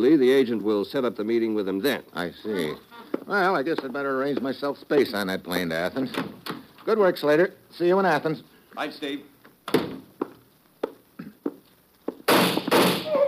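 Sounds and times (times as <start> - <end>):
speech: 0.0 - 9.9
gunshots: 12.3 - 13.1.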